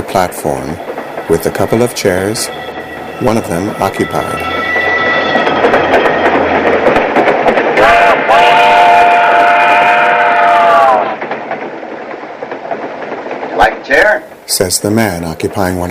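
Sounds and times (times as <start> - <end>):
train rumbling: 0.0 - 15.8
wheels clacking on rails: 0.0 - 15.8
speech: 0.1 - 4.6, 13.9 - 15.8
metallic wheel squeal: 0.8 - 7.0.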